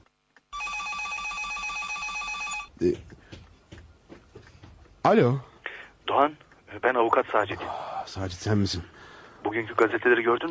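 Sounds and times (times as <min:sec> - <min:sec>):
telephone bell ringing: 0:00.5 - 0:02.7
speech: 0:02.8 - 0:03.2, 0:05.0 - 0:05.5, 0:06.1 - 0:10.5.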